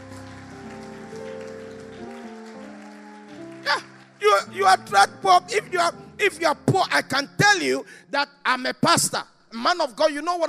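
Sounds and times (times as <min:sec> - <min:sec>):
audience clapping: 0:00.0 - 0:05.8
speech: 0:03.7 - 0:10.4.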